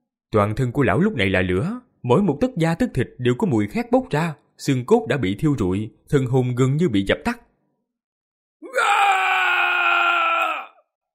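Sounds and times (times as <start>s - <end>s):
speech: 0.3s - 7.4s
old man's anguished roaring scream: 8.6s - 10.9s.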